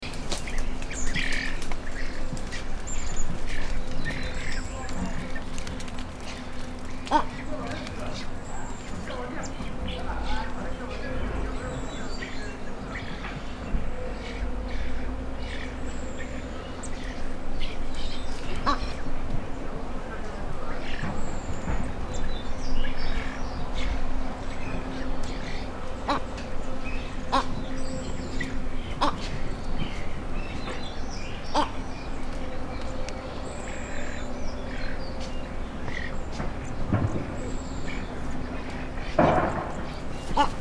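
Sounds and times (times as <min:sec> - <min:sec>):
red-legged ibis voice: 0:00.0 - 0:40.6.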